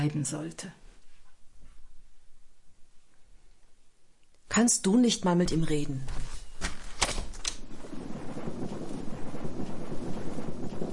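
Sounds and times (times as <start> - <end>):
speech: 0.0 - 0.8, 4.5 - 6.4
thunderstorm: 5.4 - 10.9.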